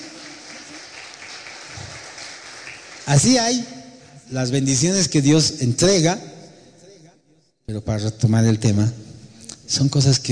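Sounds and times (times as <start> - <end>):
church congregation applauding for Jesus during a Spanish-language sermon: 0.0 - 4.2
speech: 3.1 - 6.3, 7.7 - 9.0, 9.7 - 10.3.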